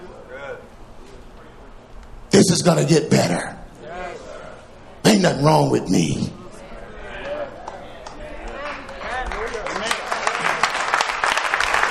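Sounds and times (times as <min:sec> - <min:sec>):
speech: 0:02.4 - 0:03.6, 0:05.1 - 0:06.4
audience clapping: 0:07.2 - 0:11.8.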